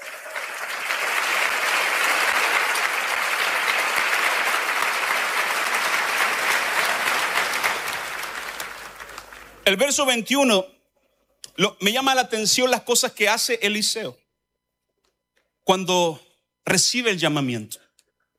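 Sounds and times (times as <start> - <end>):
loud audience applause: 0.0 - 9.7
speech: 9.7 - 10.7, 11.6 - 14.2, 15.7 - 17.8.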